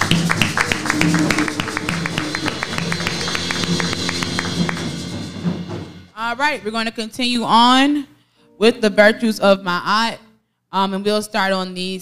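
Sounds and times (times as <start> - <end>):
audience hand clapping: 0.0 - 5.7
speech: 1.0 - 1.6, 6.2 - 12.0.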